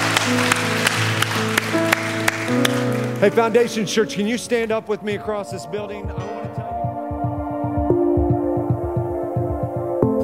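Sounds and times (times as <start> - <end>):
crowd clapping: 0.0 - 4.0
sustained musical tones: 0.0 - 10.2
speech: 3.2 - 6.3.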